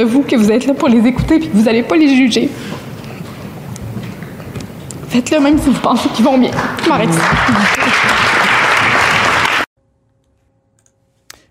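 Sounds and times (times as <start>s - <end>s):
speech: 0.0s - 2.8s, 5.1s - 7.8s
legislators applauding: 6.5s - 9.7s
laughter: 7.1s - 9.3s.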